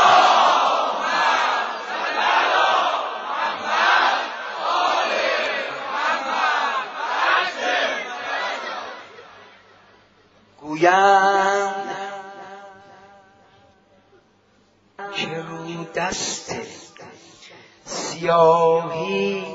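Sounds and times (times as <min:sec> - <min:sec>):
large crowd loudly chanting the salawat: 0:00.0 - 0:09.6
speech: 0:10.8 - 0:11.3, 0:18.2 - 0:19.3.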